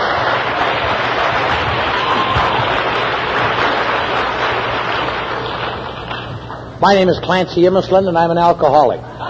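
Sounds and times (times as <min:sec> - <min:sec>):
audience applause: 0:00.0 - 0:06.6
speech: 0:06.8 - 0:09.1.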